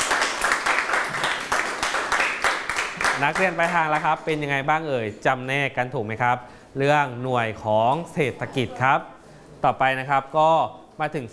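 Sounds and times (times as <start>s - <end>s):
clapping: 0.0s - 4.1s
speech: 3.2s - 11.3s.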